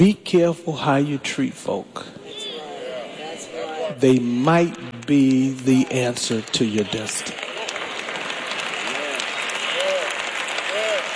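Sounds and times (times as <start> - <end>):
speech: 0.0 - 2.3, 3.9 - 7.4
audience clapping: 4.0 - 11.1.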